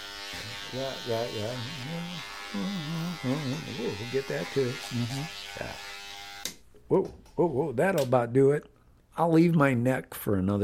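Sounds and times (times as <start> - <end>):
electric shaver buzzing while shaving: 0.0 - 6.6
speech: 0.7 - 5.9, 6.9 - 10.6.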